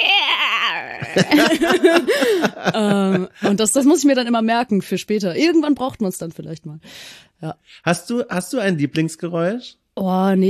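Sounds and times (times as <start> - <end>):
voice imitating damp sponge squeaking in glass: 0.0 - 1.3
laughter: 0.9 - 3.8
speech: 1.2 - 10.4.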